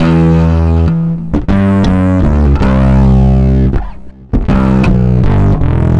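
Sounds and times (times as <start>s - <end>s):
distorted electric bass: 0.0s - 5.9s.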